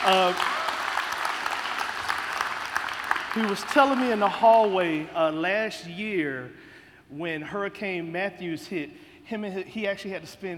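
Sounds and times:
audience clapping hands: 0:00.0 - 0:05.4
speech: 0:00.1 - 0:00.5, 0:03.4 - 0:10.5.

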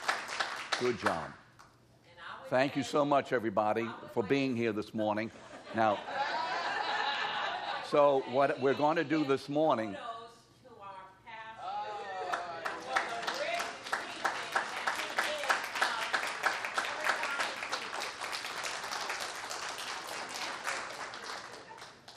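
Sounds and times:
audience clapping: 0:00.0 - 0:01.7, 0:12.2 - 0:22.1
speech: 0:00.8 - 0:01.4, 0:02.5 - 0:06.2, 0:07.9 - 0:10.1
laughter: 0:05.3 - 0:09.4.

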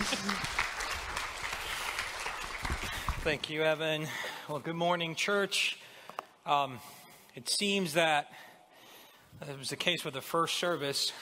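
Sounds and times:
audience applauding: 0:00.0 - 0:03.5
speech: 0:03.2 - 0:05.8, 0:06.4 - 0:08.5, 0:09.4 - 0:11.1.

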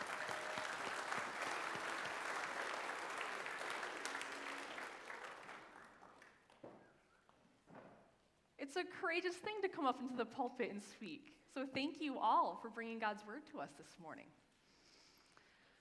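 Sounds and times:
audience applause: 0:00.0 - 0:06.6
speech: 0:08.7 - 0:14.4.

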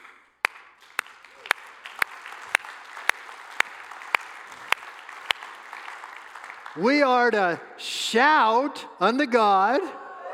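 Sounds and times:
audience clapping hands: 0:00.0 - 0:07.6
speech: 0:06.8 - 0:10.0.

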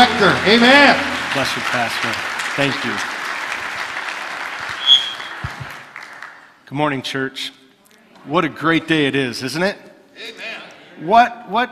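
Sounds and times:
audience applause: 0:00.0 - 0:06.5
speech: 0:00.2 - 0:03.1, 0:06.7 - 0:07.6, 0:08.2 - 0:11.6
high whistle-like tone: 0:04.8 - 0:05.5.

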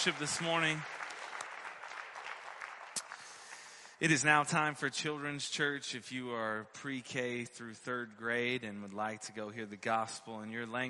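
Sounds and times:
speech: 0:00.0 - 0:01.1, 0:04.0 - 0:10.8
audience applause: 0:00.0 - 0:04.2.

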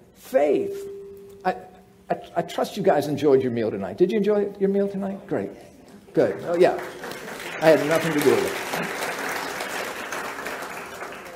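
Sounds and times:
speech: 0:00.3 - 0:09.0
crowd clapping: 0:06.2 - 0:11.3.

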